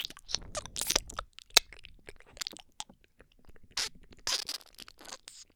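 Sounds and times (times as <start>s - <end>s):
gentle ear sucking in both ears: 0.0s - 1.2s, 3.8s - 5.4s
kissing sounds: 0.0s - 1.2s, 3.8s - 5.4s.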